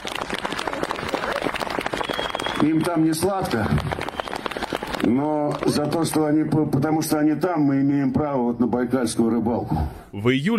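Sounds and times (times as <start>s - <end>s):
audience clapping for soldiers at the front: 0.0s - 6.4s
speech: 2.6s - 4.0s, 5.0s - 10.5s.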